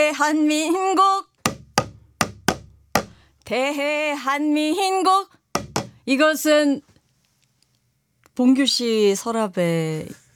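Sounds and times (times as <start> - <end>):
speech: 0.0 - 1.3, 3.5 - 5.4, 6.1 - 6.9, 8.4 - 10.2
sogo Korean hand drum taps: 1.5 - 3.2, 5.6 - 6.0.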